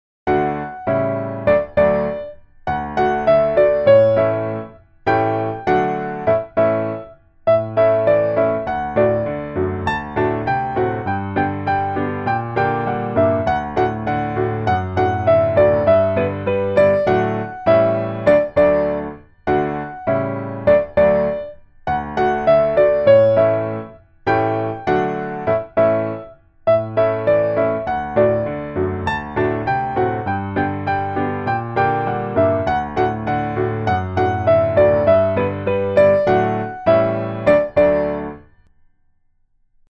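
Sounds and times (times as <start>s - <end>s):
piano: 0.2s - 39.0s.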